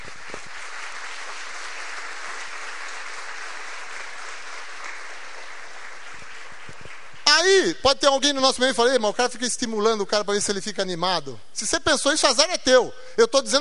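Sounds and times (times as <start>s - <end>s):
audience applauding: 0.0s - 7.3s
speech: 7.4s - 13.5s.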